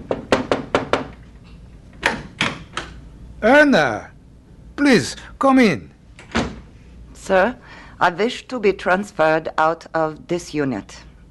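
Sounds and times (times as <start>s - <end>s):
knocking on a door: 0.0s - 1.2s
speech: 3.4s - 4.1s, 4.8s - 5.9s, 7.2s - 11.1s.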